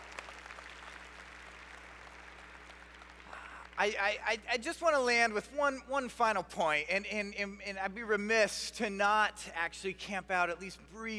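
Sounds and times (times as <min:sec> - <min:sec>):
audience applause: 0:00.0 - 0:03.8
low electrical hum: 0:00.0 - 0:11.1
speech: 0:03.8 - 0:11.1.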